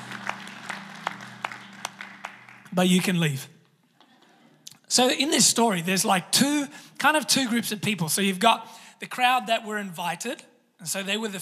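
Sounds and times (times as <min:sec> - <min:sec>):
sparse handclaps from a small audience: 0:00.0 - 0:03.2
speech: 0:02.7 - 0:03.6, 0:04.9 - 0:11.3.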